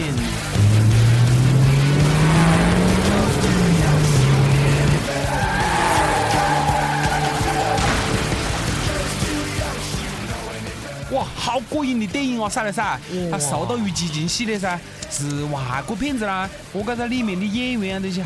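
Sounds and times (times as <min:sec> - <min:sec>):
car engine roaring as it accelerates in an action film car scene: 0:00.0 - 0:10.3
sustained high tire squeal: 0:05.0 - 0:08.3
speech: 0:11.8 - 0:18.2.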